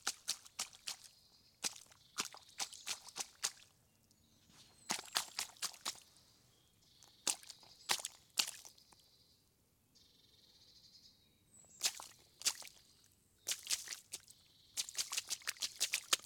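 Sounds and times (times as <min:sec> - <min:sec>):
footsteps through puddles: 0:00.0 - 0:03.7, 0:04.6 - 0:06.1, 0:07.2 - 0:08.8, 0:11.8 - 0:12.8, 0:13.5 - 0:16.2.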